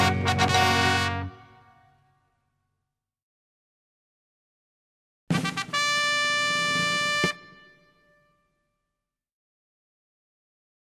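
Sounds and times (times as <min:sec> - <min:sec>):
playful brass fanfare: 0:00.0 - 0:02.2, 0:05.3 - 0:08.4.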